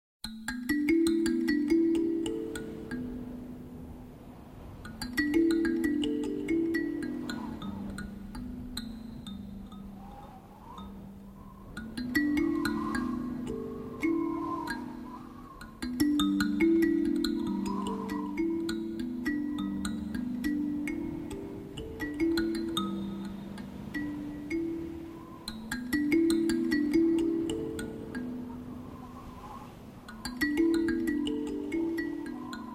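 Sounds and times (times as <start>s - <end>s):
kalimba: 0.2s - 32.7s.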